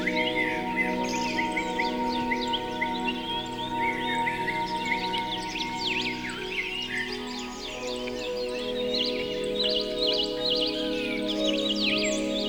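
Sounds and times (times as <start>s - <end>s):
natural birdsong: 0.0s - 12.4s
relaxing music: 0.0s - 12.4s.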